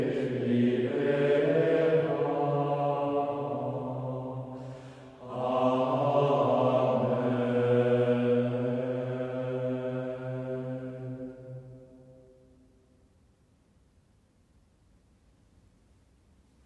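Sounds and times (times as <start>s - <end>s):
hymn: 0.0s - 12.7s.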